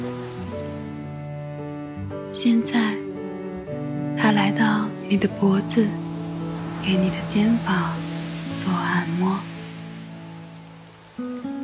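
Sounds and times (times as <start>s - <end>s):
flowing water: 0.0s - 11.6s
speech: 2.3s - 3.0s, 4.5s - 6.0s, 6.8s - 8.0s.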